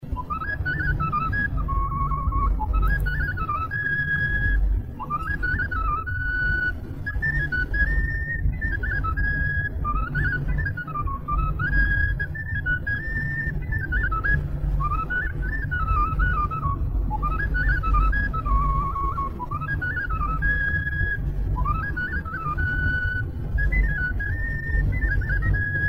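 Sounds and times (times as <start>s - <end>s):
sârbă folk dance on fluier flute: 0.0s - 25.8s.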